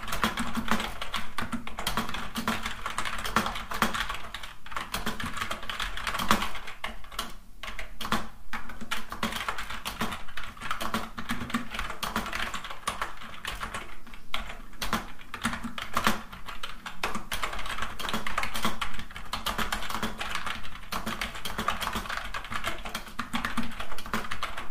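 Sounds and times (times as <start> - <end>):
fast keyboard typing: 0.0 - 24.7.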